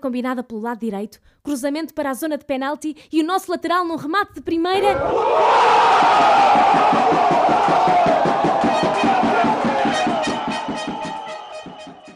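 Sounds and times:
speech: 0:00.0 - 0:10.2
crowd cheering a goal: 0:04.8 - 0:12.1.

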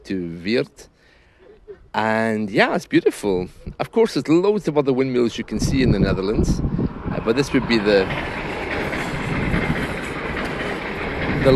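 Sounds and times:
speech: 0:00.1 - 0:00.9, 0:01.9 - 0:08.4
double-decker train passing beside a windmill in the Netherlands: 0:02.0 - 0:11.5
double-decker train wheels clattering on rails: 0:03.1 - 0:11.5.

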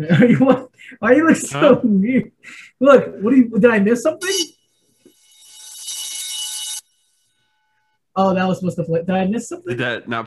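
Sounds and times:
speech: 0:00.0 - 0:04.5, 0:08.2 - 0:10.2
electric bell ringing: 0:04.2 - 0:08.0.

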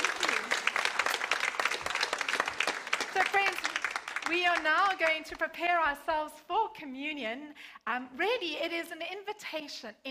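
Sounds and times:
audience applause: 0:00.0 - 0:04.9
speech: 0:04.3 - 0:10.1.

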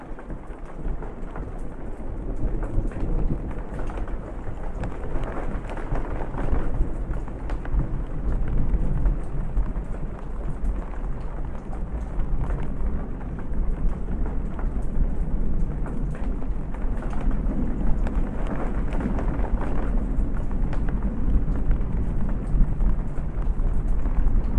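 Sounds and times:
rain falling on a porch at night: 0:00.0 - 0:24.5
rolling thunder: 0:00.0 - 0:24.5.

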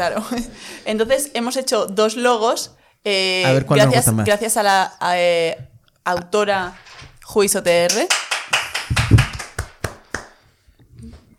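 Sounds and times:
speech: 0:00.0 - 0:08.2
clapping: 0:07.7 - 0:10.4.

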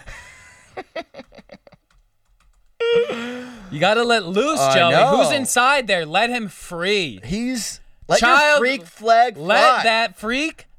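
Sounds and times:
fake keystrokes on a computer keyboard: 0:01.2 - 0:02.8
speech: 0:03.7 - 0:10.7.

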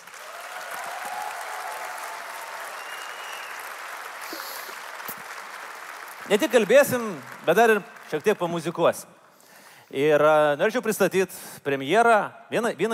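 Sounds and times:
audience applause at a late-night music and talk event in a train station: 0:00.0 - 0:08.3
speech: 0:06.3 - 0:09.2, 0:09.9 - 0:12.9.

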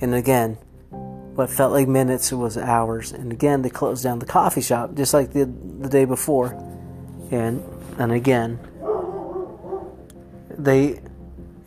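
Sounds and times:
speech: 0:00.0 - 0:00.7, 0:01.4 - 0:08.7, 0:10.6 - 0:11.1
dog barking: 0:08.8 - 0:10.0.

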